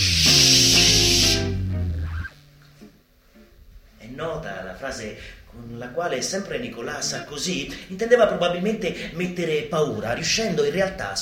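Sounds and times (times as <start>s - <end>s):
high-pressure water jet spraying: 0.0s - 1.6s
speech: 4.4s - 11.1s.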